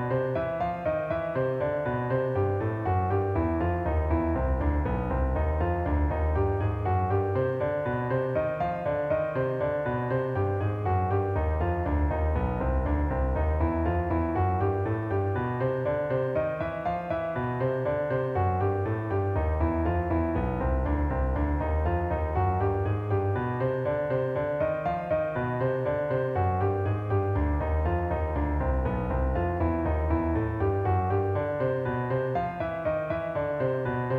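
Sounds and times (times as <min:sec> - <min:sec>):
jazz piano major minor triad embellishment: 0:00.0 - 0:34.1.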